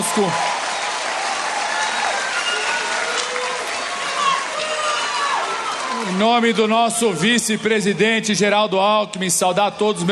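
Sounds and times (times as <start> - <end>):
crowd applauding: 0.0 - 8.1
speech: 0.2 - 0.5, 6.1 - 10.1.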